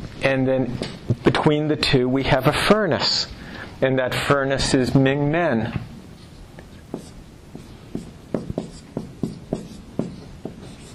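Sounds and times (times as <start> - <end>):
speech: 0.2 - 5.9
pen strokes drawing Chinese characters by hand: 6.2 - 10.9.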